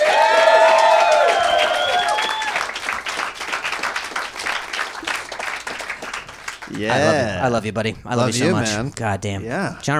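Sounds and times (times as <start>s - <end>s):
audience applause: 0.0s - 7.1s
speech: 6.8s - 9.9s.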